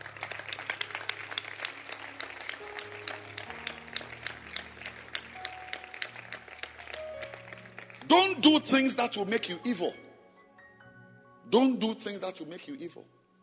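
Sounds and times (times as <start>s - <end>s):
audience applauding: 0.0s - 9.0s
speech: 8.1s - 10.0s, 11.5s - 13.2s.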